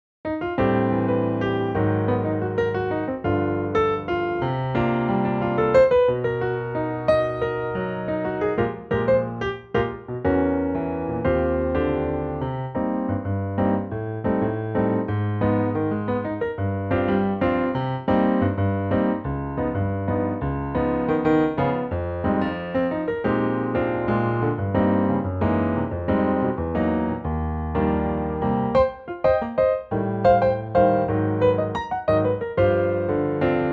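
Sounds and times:
latin piano in E flat: 0.2s - 33.7s.

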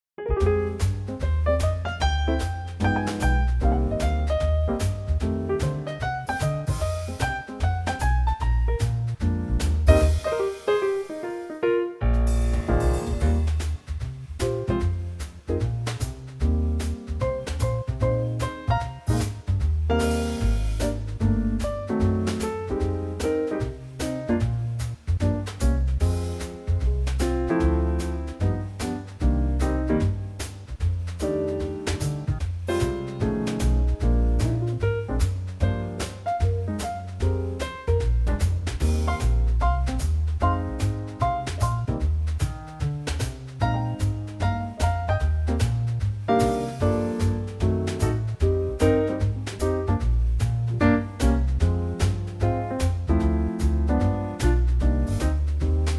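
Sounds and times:
E-flat swing backing track: 0.2s - 55.9s.

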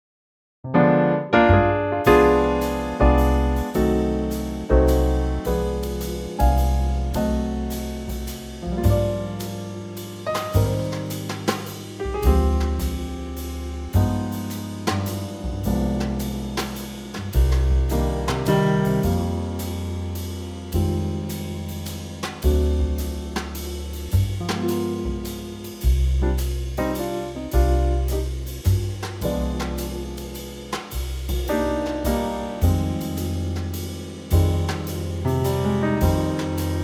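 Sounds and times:
trio in C minor: 0.6s - 36.8s.

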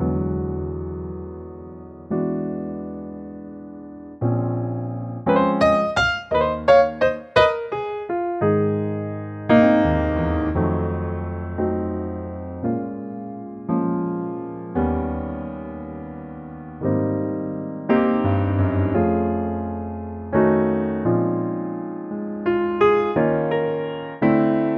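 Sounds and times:
blues standard piano arrangement: 0.0s - 24.7s.

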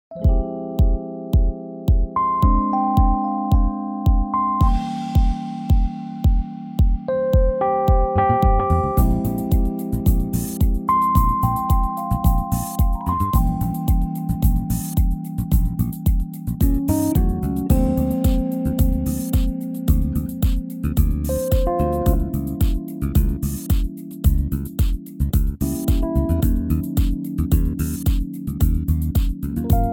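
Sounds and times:
smooth backing track in A flat: 0.1s - 29.9s.

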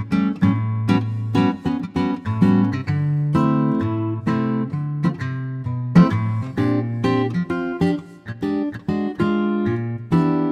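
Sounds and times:
lightly swinging acoustic guitar bossa arrangement in Bb: 0.0s - 10.5s.

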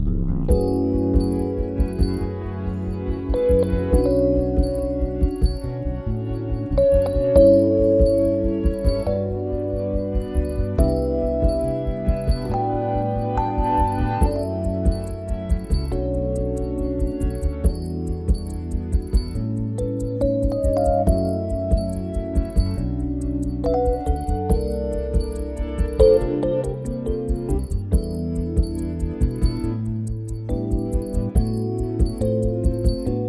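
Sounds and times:
smooth backing track in D for male vocals: 0.1s - 33.2s.

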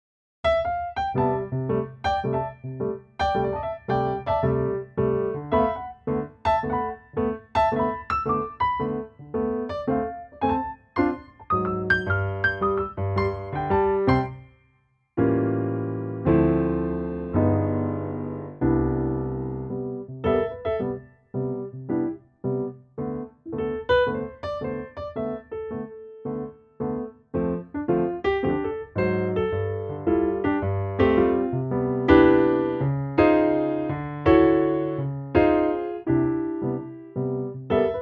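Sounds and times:
piano note C: 0.5s - 14.6s, 15.2s - 38.0s.

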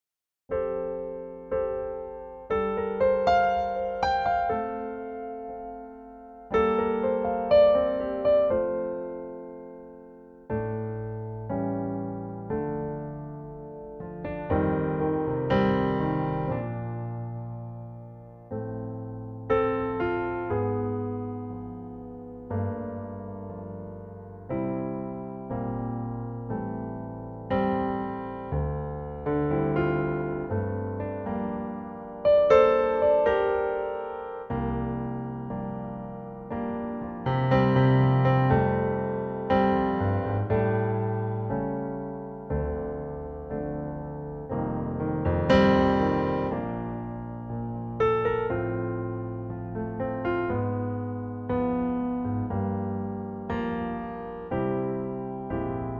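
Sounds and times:
piano: 0.5s - 55.9s.

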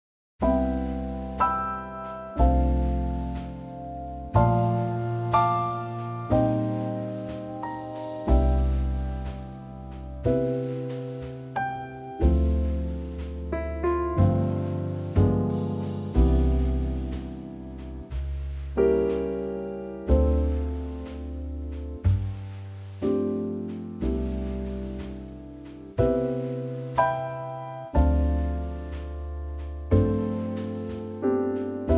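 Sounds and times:
trio music in C: 0.4s - 31.9s.

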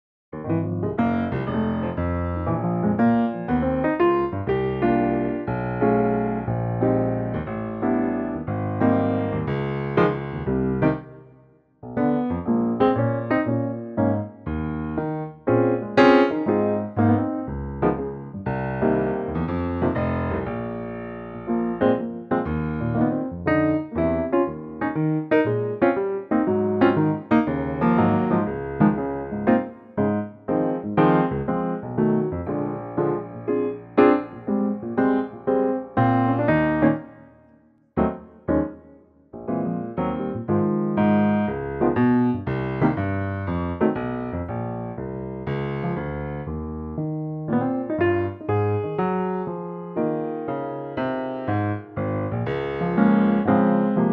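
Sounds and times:
piano in A flat: 0.3s - 54.1s.

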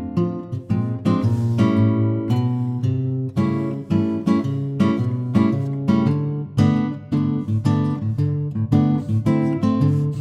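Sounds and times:
acoustic guitar in F: 0.0s - 10.1s.

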